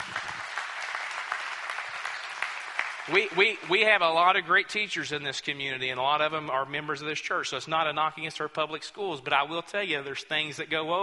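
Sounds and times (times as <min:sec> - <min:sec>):
large indoor crowd applauding: 0:00.0 - 0:04.0
speech: 0:03.1 - 0:11.0.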